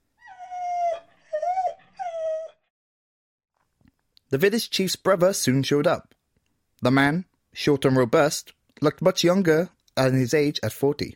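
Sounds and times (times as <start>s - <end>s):
dog whimpering after being kicked: 0.2s - 2.7s
speech: 4.3s - 6.1s, 6.8s - 11.1s.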